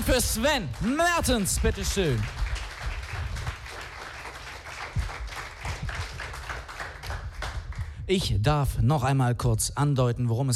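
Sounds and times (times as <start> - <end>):
speech: 0.0 - 2.4, 8.1 - 10.5
crowd applauding: 0.0 - 8.0.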